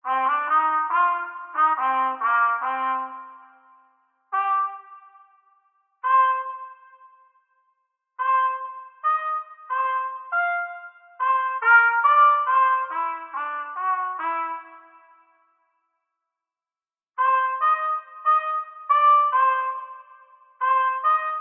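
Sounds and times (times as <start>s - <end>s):
trumpet playing in a cave: 0.0s - 5.4s, 6.0s - 7.1s, 8.2s - 15.3s, 17.2s - 21.4s.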